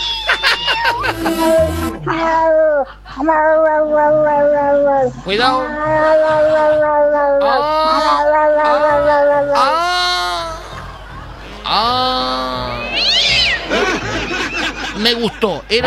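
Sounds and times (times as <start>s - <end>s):
cat in heat yowling: 0.0s - 2.6s, 3.2s - 10.0s, 13.0s - 13.6s
laughter: 0.0s - 3.0s, 3.8s - 15.8s
speech: 0.9s - 9.8s, 15.0s - 15.8s.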